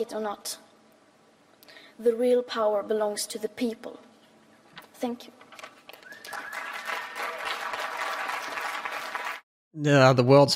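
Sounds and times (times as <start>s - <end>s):
speech: 0.0s - 0.6s, 2.0s - 4.1s, 5.0s - 5.7s, 9.8s - 10.5s
crowd applause: 5.9s - 9.4s.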